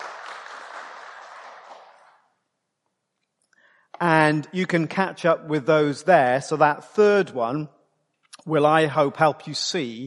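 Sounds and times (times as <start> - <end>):
audience applause: 0.0 - 2.2
speech: 4.0 - 7.8, 8.4 - 10.0.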